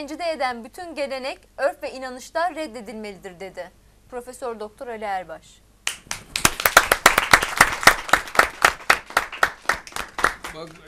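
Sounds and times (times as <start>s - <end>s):
speech: 0.0s - 5.6s, 10.5s - 10.8s
audience applause: 6.3s - 10.8s.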